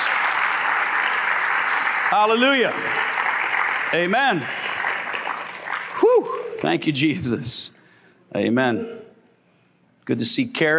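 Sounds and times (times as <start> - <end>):
audience clapping: 0.0 - 6.6
speech: 2.1 - 3.2, 3.9 - 4.7, 6.1 - 9.0, 10.1 - 10.7.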